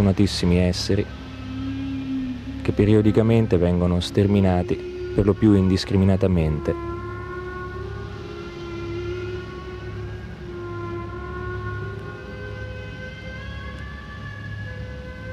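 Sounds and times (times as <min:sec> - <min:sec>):
speech: 0:00.0 - 0:01.2, 0:02.6 - 0:06.9
low rumble: 0:00.0 - 0:15.3
whale song: 0:00.0 - 0:15.3.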